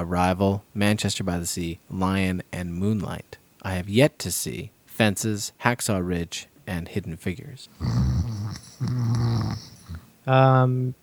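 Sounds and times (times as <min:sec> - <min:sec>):
speech: 0:00.0 - 0:09.7, 0:10.3 - 0:11.0
person snoring: 0:07.8 - 0:10.1.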